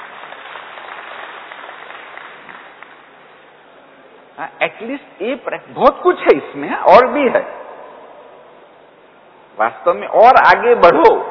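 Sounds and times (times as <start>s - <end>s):
hand clapping: 0.0s - 3.1s
speech: 4.4s - 7.6s, 9.6s - 11.2s.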